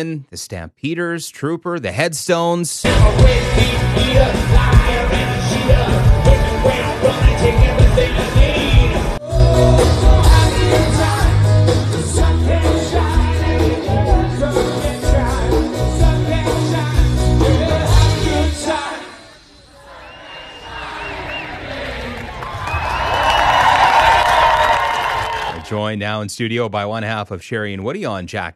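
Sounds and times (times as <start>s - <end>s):
speech: 0.0s - 10.8s, 25.7s - 28.5s
loud thumping live music at outdoor concert: 2.8s - 19.6s
large crowd cheering at outdoor concert: 2.9s - 11.7s, 13.5s - 14.6s, 19.8s - 25.7s.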